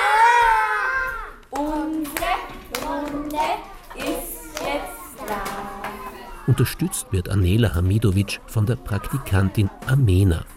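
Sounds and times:
children cheering: 0:00.0 - 0:01.4
children clapping loudly: 0:01.4 - 0:06.0
speech: 0:06.5 - 0:10.5.

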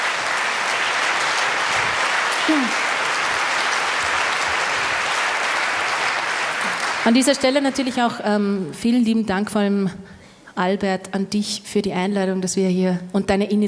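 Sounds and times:
audience applause: 0:00.0 - 0:08.2
speech: 0:02.5 - 0:02.8, 0:07.1 - 0:13.6.

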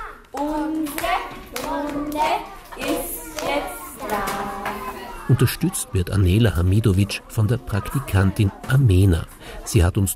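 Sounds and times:
children clapping loudly: 0:00.2 - 0:04.9
speech: 0:05.3 - 0:10.1.

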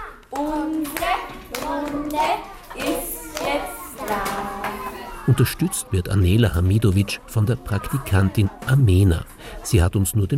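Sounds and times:
children clapping loudly: 0:00.3 - 0:04.9
speech: 0:05.3 - 0:10.3.

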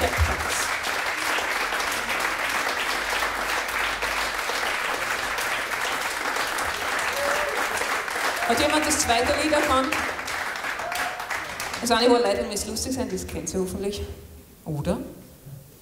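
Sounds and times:
crowd applause: 0:00.0 - 0:12.0
speech: 0:08.5 - 0:10.2, 0:11.8 - 0:15.2.

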